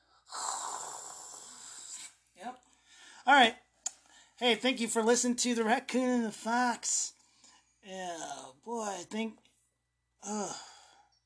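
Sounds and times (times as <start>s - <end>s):
snoring: 0.2s - 2.2s
speech: 3.3s - 3.6s, 4.4s - 7.2s, 7.9s - 9.4s, 10.2s - 10.7s.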